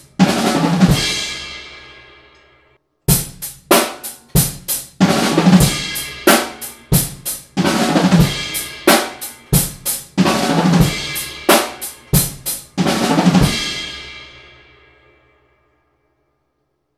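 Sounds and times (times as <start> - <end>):
drum break in eighth-note triplets: 0.0 - 1.5, 3.1 - 14.1.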